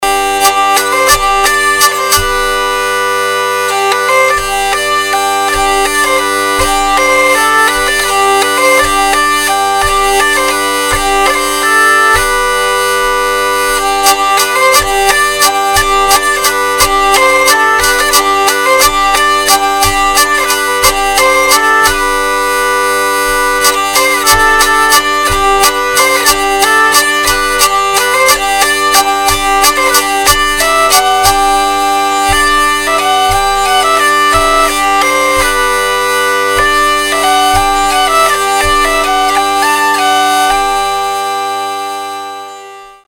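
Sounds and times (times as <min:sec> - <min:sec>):
hurdy-gurdy in German G tuning: 0:00.0 - 0:43.0.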